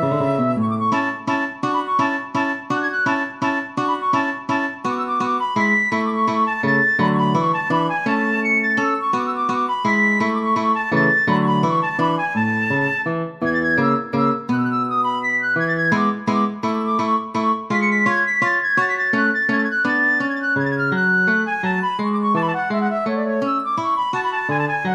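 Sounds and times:
classical guitar playing an allegro in a major key: 0.0 - 24.9
flute playing an allegro in a major key: 0.0 - 24.9.

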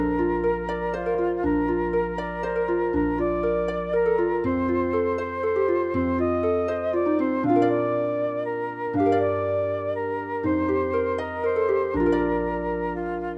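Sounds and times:
flute: 0.0 - 13.3
harp: 0.0 - 13.3.

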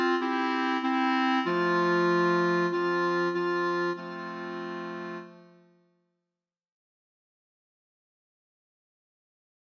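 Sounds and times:
clarinet quartet: 0.0 - 5.3.

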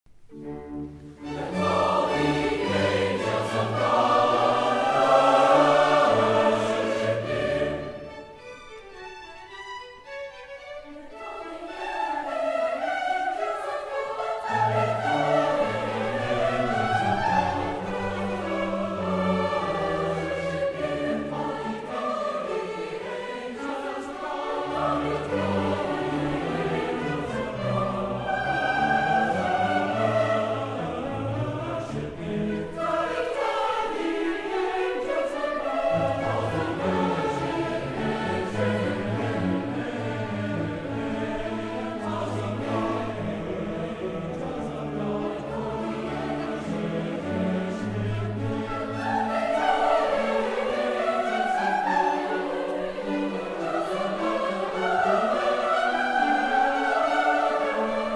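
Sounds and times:
concert choir singing: 0.3 - 58.1.

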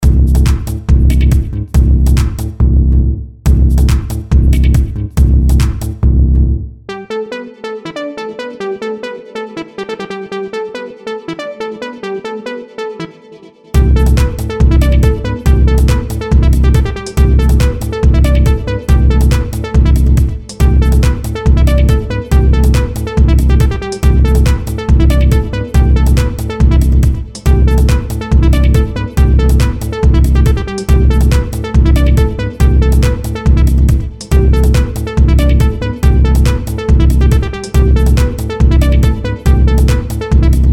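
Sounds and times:
house beat: 0.0 - 2.6, 3.5 - 6.0, 13.8 - 40.7.

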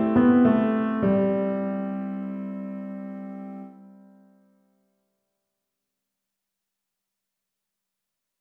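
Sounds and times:
waltz music: 0.0 - 4.1.

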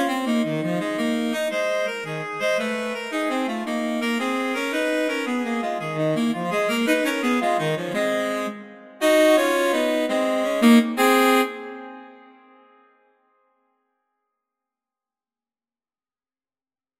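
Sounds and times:
blues duet for saxophones: 0.0 - 12.2.

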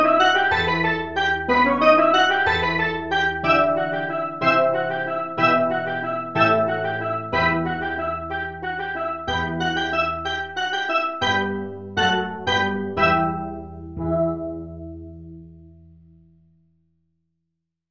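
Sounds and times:
steel orchestra playing: 0.0 - 13.6.

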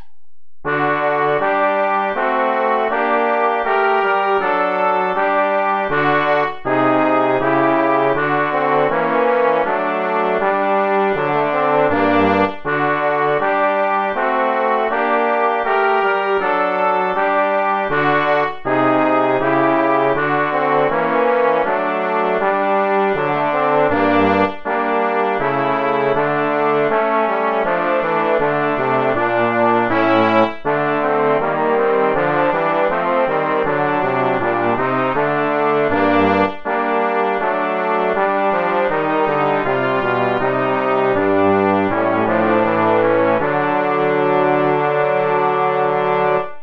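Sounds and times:
play-along backing music without trumpet: 0.7 - 46.6.

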